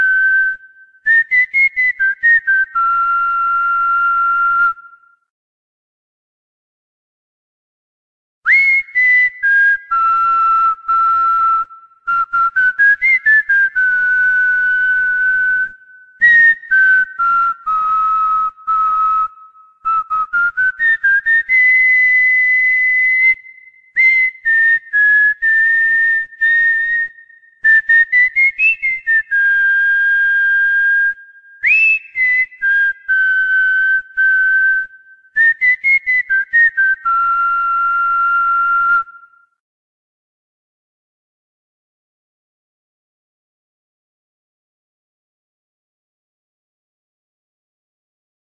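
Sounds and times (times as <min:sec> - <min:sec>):
whistling for a cockatiel: 0:00.0 - 0:05.3, 0:08.5 - 0:39.6.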